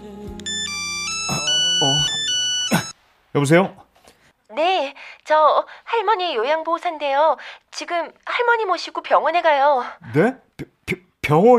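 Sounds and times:
phone ringing with an electronic melodic ringtone: 0:00.4 - 0:03.0
speech: 0:03.4 - 0:03.8, 0:04.6 - 0:11.5.

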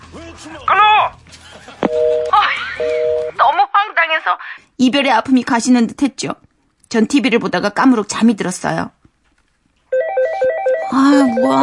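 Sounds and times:
speech: 0:00.4 - 0:02.2, 0:04.0 - 0:09.0, 0:10.9 - 0:11.6
phone ringtone with bright electronic melody: 0:01.9 - 0:03.4, 0:09.9 - 0:11.6.

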